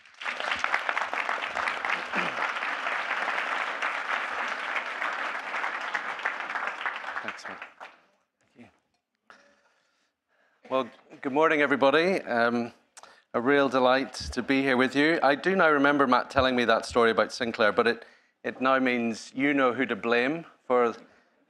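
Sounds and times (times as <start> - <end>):
audience applause welcoming a speaker at a weekend gathering: 0.0 - 8.0
speech: 10.8 - 21.4.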